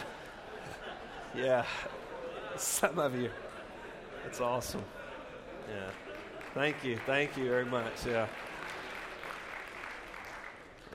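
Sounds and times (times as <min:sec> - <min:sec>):
laughter: 0:00.0 - 0:08.3
speech: 0:01.3 - 0:03.5, 0:04.2 - 0:05.0, 0:05.6 - 0:08.4
faint audience applause during a sermon: 0:05.7 - 0:10.9.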